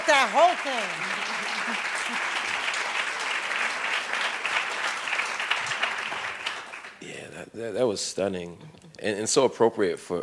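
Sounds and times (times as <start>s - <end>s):
audience applause: 0.0s - 7.0s
speech: 0.2s - 2.2s, 7.6s - 10.2s.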